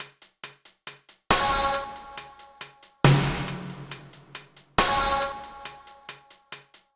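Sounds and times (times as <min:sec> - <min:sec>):
grime hi-hats and snare beat: 0:00.0 - 0:06.9.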